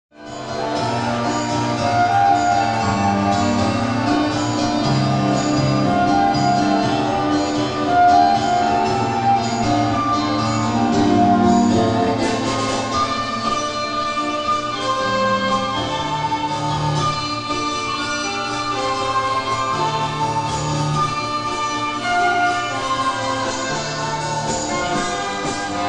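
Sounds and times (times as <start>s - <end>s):
orchestra: 0.2s - 25.8s.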